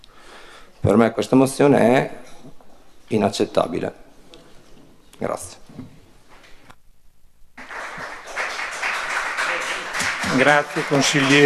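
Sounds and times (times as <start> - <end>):
speech: 0.8 - 2.3, 3.1 - 4.0, 5.2 - 6.0, 10.4 - 11.4
audience applause in council chamber: 7.6 - 11.4.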